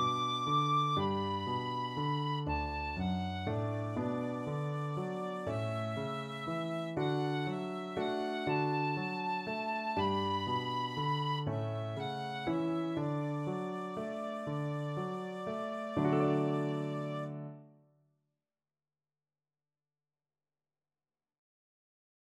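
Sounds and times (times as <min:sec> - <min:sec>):
tin whistle: 0:00.0 - 0:17.4.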